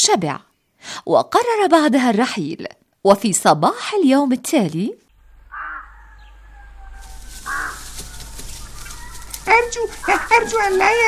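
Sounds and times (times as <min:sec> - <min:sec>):
speech: 0:00.0 - 0:05.0, 0:09.5 - 0:11.0
hen clucking on a farm: 0:05.4 - 0:11.0.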